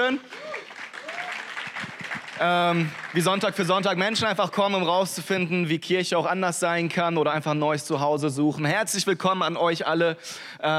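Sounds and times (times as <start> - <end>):
speech: 0.0 - 0.5, 2.4 - 10.7
crowd applause: 0.2 - 4.2
whoops: 0.3 - 1.8.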